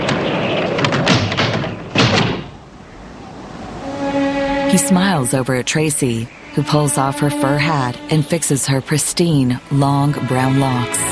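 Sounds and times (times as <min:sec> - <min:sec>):
wooden doors flapping and banging in the wind: 0:00.0 - 0:02.8
speech: 0:04.7 - 0:11.0.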